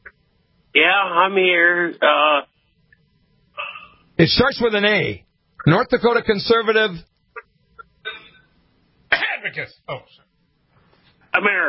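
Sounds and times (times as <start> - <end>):
speech: 0.8 - 2.5, 4.2 - 7.1, 9.4 - 10.2, 11.3 - 11.6
man clearing his throat: 8.0 - 8.5, 9.1 - 9.6.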